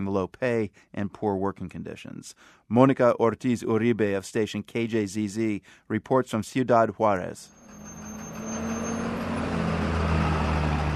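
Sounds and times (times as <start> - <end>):
speech: 0.0 - 8.2
procession of repurposed American school buses passing in Ciudad Juárez: 7.5 - 10.9.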